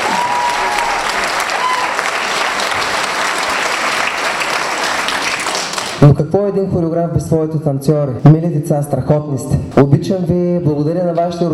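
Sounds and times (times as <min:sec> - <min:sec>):
audience applause: 0:00.0 - 0:06.0
speech: 0:06.0 - 0:11.5.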